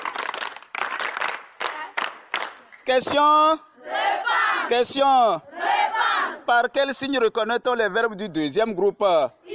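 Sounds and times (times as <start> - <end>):
crowd clapping: 0.0 - 2.7
speech: 2.9 - 5.5, 6.5 - 9.4.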